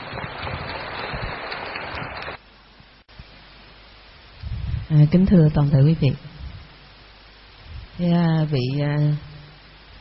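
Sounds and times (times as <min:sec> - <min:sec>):
audience applause: 0:00.0 - 0:02.4
room hum: 0:00.0 - 0:09.9
speech: 0:04.9 - 0:06.3, 0:08.0 - 0:09.3.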